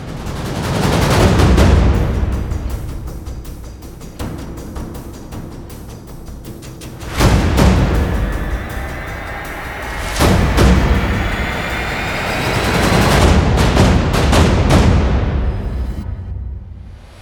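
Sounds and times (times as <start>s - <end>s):
drums: 0.0s - 17.1s
percussion: 0.0s - 17.1s.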